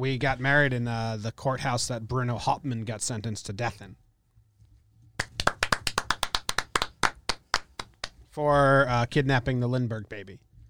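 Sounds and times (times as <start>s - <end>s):
speech: 0.0s - 4.0s, 8.4s - 10.5s
hand clapping: 5.2s - 8.2s.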